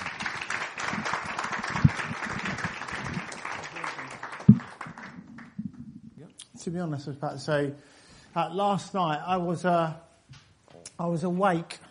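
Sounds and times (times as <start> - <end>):
audience applause for speaker: 0.0 - 5.6
speech: 6.6 - 10.0, 11.0 - 11.8.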